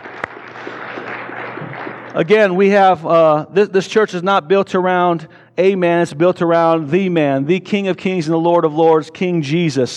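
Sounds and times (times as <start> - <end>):
sharp loud clap: 0.0 - 2.3
crowd clapping: 0.0 - 2.8
speech: 2.1 - 9.9.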